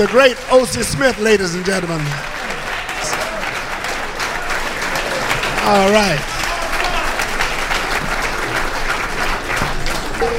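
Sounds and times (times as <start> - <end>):
speech: 0.0 - 2.5, 5.6 - 6.3, 10.2 - 10.3
audience applause: 0.0 - 10.3.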